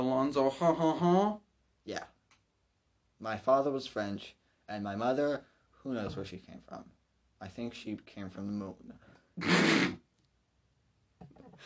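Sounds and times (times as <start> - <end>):
speech: 0.0 - 2.2, 3.2 - 10.0
cough: 9.4 - 10.0.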